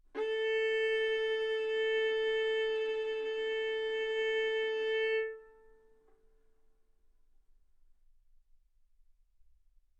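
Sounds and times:
violin arco on A string: 0.2 - 5.7.

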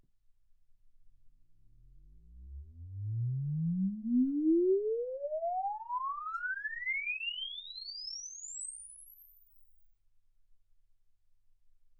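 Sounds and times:
exponential sine sweep from 10 Hz to 24 kHz: 1.7 - 9.7.

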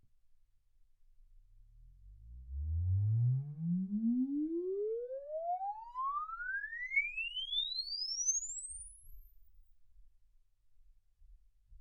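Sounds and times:
exponential sine sweep from 10 Hz to 24 kHz: 2.3 - 9.5.

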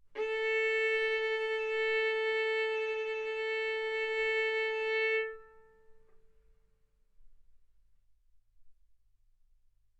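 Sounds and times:
violin arco on A string: 0.2 - 6.2.

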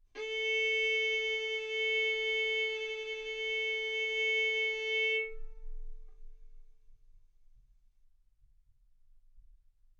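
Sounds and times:
violin arco on A string: 0.2 - 5.8.

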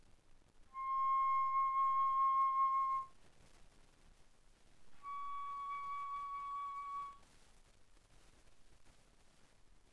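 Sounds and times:
bass flute notes C6 and Db6: 0.8 - 3.0, 5.0 - 7.2.

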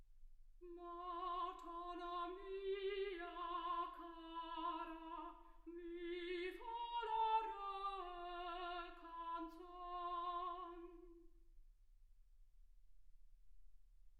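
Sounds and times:
soprano singing: 0.6 - 11.3.

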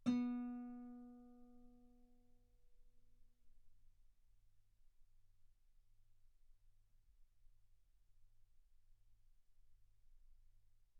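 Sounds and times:
guitar B3 note on B string played fortissimo: 0.0 - 1.3.

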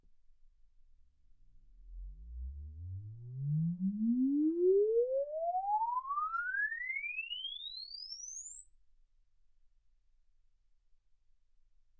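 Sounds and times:
exponential sine sweep from 10 Hz to 24 kHz: 1.8 - 9.6.

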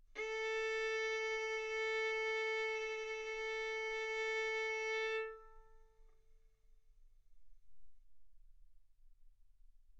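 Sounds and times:
violin bowed arco notes: 0.2 - 6.0.

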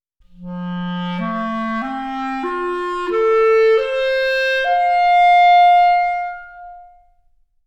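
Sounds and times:
clarinet: 0.2 - 7.4.

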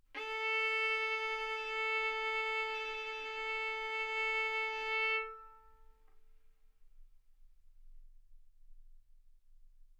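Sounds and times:
violin bowed arco notes: 0.2 - 5.9.

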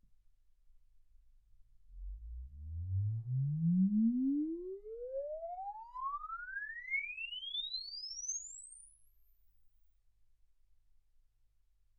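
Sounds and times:
exponential sine sweep from 10 Hz to 24 kHz: 2.0 - 9.4.

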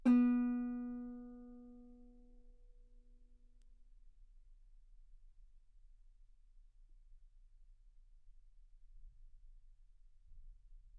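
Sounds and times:
guitar note B3: 0.0 - 1.8.

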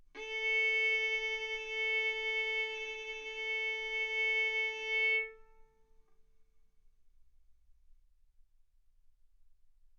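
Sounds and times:
violin arco on A string: 0.2 - 5.7.

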